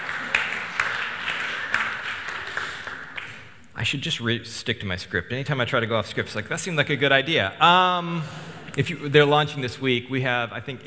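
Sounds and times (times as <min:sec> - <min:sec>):
sparse scattered clapping from a few people in a room: 0:00.0 - 0:03.8
speech: 0:03.8 - 0:10.8.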